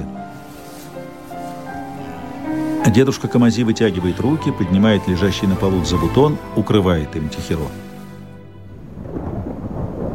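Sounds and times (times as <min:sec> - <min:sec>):
rain hissing: 0:00.0 - 0:10.1
speech: 0:02.8 - 0:07.9
rolling thunder: 0:08.6 - 0:10.1.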